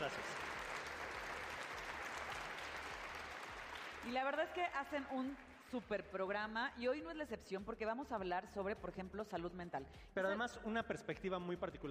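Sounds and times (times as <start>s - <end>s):
speech: 0.0s - 0.4s, 4.0s - 11.8s
crowd applauding: 0.0s - 5.7s.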